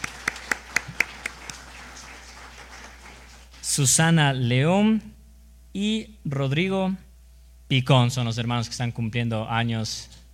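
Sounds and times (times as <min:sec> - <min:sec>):
steady hand claps: 0:00.0 - 0:03.7
speech: 0:03.8 - 0:05.2, 0:05.8 - 0:07.0, 0:07.7 - 0:10.2.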